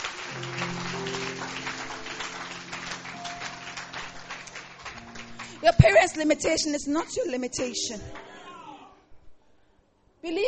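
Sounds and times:
sustained low keyboard notes: 0.0s - 8.2s
audience clapping: 0.0s - 8.3s
speech: 5.6s - 8.3s, 10.3s - 10.4s.

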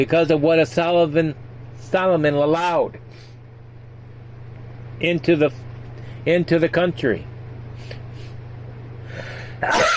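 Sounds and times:
speech: 0.0s - 3.3s, 5.0s - 5.6s, 6.2s - 8.0s, 9.1s - 9.9s
low hum: 0.0s - 9.9s
person sneezing from allergies: 9.2s - 9.9s.

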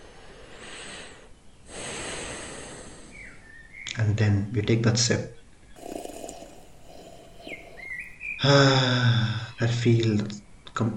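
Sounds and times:
speech: 4.0s - 5.4s, 8.4s - 10.9s
person sniffing coffee steam through nose: 5.8s - 8.8s.

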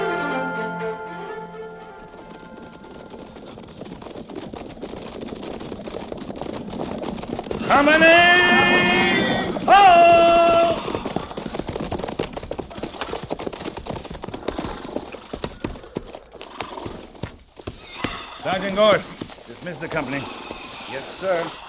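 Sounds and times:
horses' hooves clip-clopping: 1.3s - 21.6s
horse whinnying: 6.7s - 21.6s
speech: 7.7s - 8.4s, 18.8s - 19.1s, 19.7s - 21.6s.

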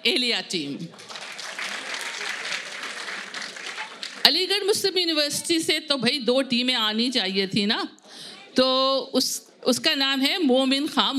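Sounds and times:
speech: 0.0s - 1.1s, 4.3s - 11.1s
audience applause: 0.9s - 4.3s.

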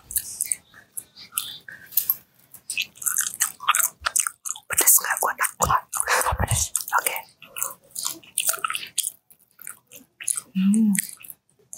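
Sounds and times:
chewing and crunching on a wet macaroni snack: 0.0s - 11.7s.

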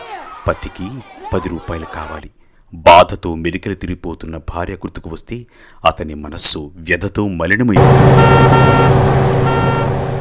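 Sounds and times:
speech: 0.5s - 9.9s
city bus engine drone arriving and stopping: 7.8s - 10.1s
city bus tonal whine: 7.8s - 10.1s.

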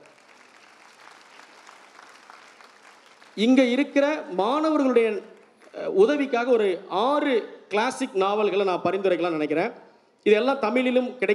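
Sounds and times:
room full of people applauding: 0.0s - 6.0s
speech: 3.4s - 11.3s.

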